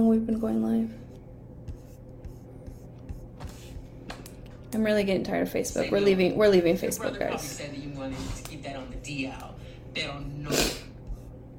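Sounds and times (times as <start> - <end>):
speech: 0.0 - 1.0, 4.7 - 10.8
person sniffling: 10.5 - 10.9.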